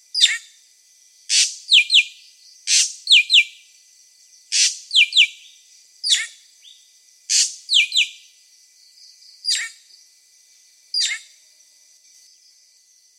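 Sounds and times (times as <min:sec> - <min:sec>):
drongo singing harsh buzzy notes and double chips: 0:01.2 - 0:08.4, 0:09.0 - 0:10.0, 0:10.9 - 0:11.4.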